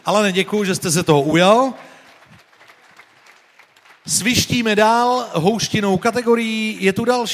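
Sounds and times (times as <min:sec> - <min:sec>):
speech: 0:00.0 - 0:01.9, 0:04.1 - 0:07.3
audience applause in a garden: 0:00.5 - 0:05.3.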